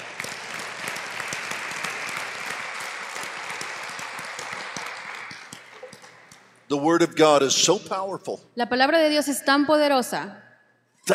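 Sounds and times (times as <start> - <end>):
audience applause: 0.0 - 6.3
speech: 6.7 - 10.4.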